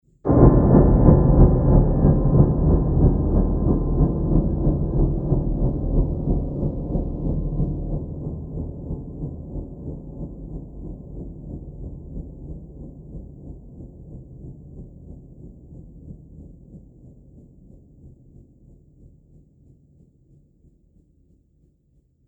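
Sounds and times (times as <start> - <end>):
trembling horror piano: 0.3 - 14.8.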